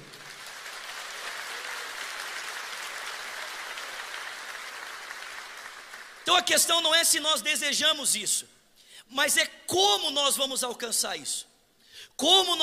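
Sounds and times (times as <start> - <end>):
audience applause: 0.0 - 6.3
speech: 6.3 - 11.5, 12.1 - 12.6.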